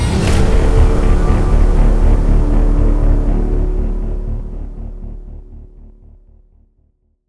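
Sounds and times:
death music sting: 0.1s - 6.5s.

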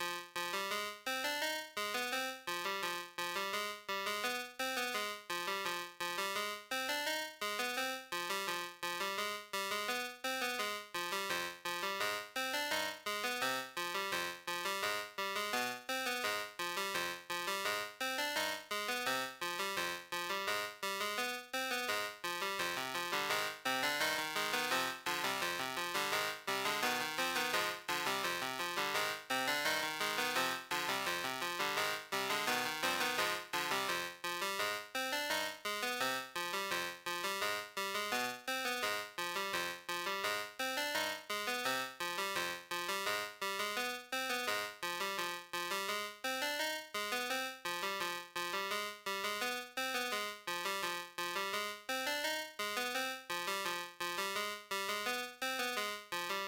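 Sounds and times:
music: 0.0s - 56.4s.

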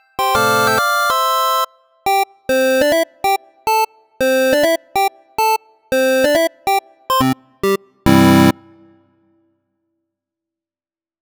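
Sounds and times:
chiptune ragtime music: 0.2s - 9.0s.

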